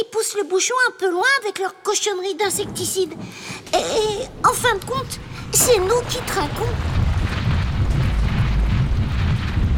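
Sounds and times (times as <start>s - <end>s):
speech: 0.0s - 6.9s
mudslide rumbling over a cave entrance: 2.5s - 9.7s.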